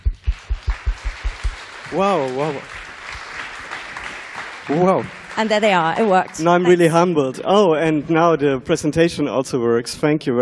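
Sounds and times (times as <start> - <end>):
rhythmic low thumps: 0.0 - 3.2
audience applause: 0.3 - 8.4
speech: 1.9 - 2.8, 4.7 - 10.3.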